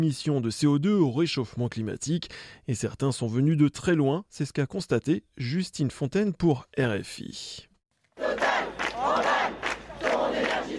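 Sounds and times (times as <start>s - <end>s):
speech: 0.0s - 8.4s
crowd of protesting activists chanting: 8.2s - 10.7s.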